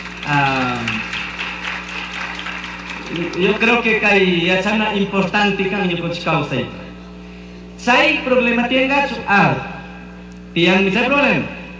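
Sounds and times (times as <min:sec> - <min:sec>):
audience applause: 0:00.0 - 0:04.4
speech: 0:00.3 - 0:01.0, 0:03.1 - 0:06.8, 0:07.8 - 0:09.7, 0:10.6 - 0:11.6.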